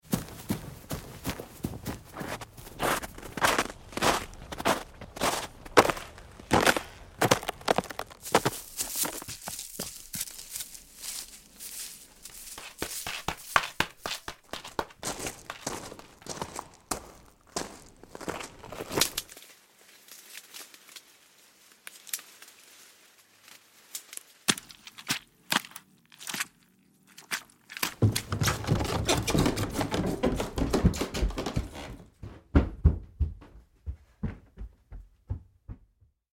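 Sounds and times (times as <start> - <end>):
footsteps: 0.0 - 19.3, 27.8 - 36.1.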